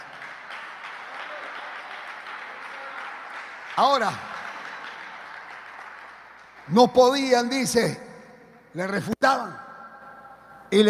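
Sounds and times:
audience clapping: 0.0 - 7.8
speech: 3.8 - 4.3, 6.7 - 8.1, 8.7 - 9.6.

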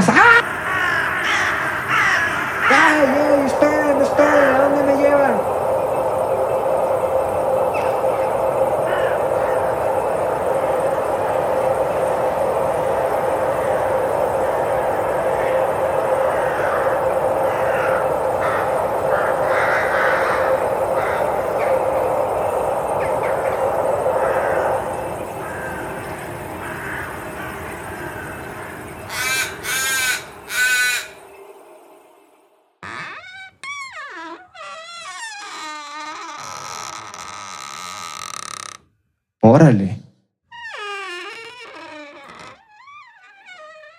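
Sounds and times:
crows cawing: 0.2 - 6.2, 7.7 - 11.0, 11.6 - 31.3
low rumble: 0.4 - 29.2.

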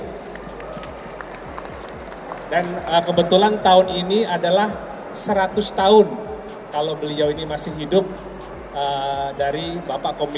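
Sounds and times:
audience applause: 0.0 - 3.0
speech: 2.5 - 10.3.

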